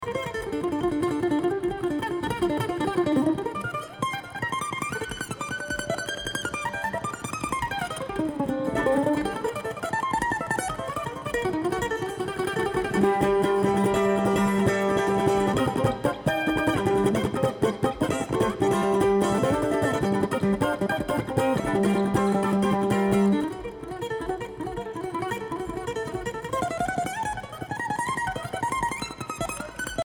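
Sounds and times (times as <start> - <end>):
Kentucky mandolin: 0.0 - 30.0.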